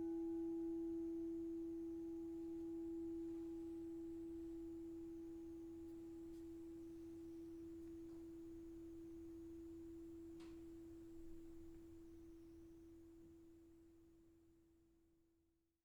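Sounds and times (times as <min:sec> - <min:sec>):
crystal singing bowls ringing: 0:00.0 - 0:10.3.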